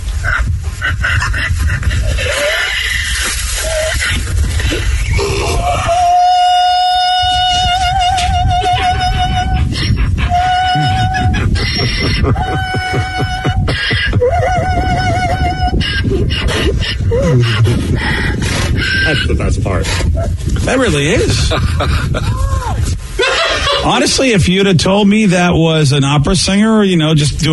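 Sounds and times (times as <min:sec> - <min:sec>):
donkey braying in high notes: 0:00.2 - 0:21.2
laughter: 0:08.2 - 0:17.9, 0:21.1 - 0:24.2
speech: 0:20.7 - 0:22.6, 0:23.9 - 0:27.5.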